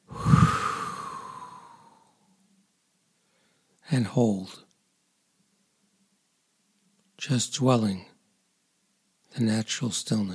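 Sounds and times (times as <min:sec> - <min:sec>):
deep breath during a breath-hold exercise: 0:00.0 - 0:02.2, 0:03.2 - 0:03.7
speech: 0:03.9 - 0:04.7, 0:07.2 - 0:08.1, 0:09.3 - 0:10.3.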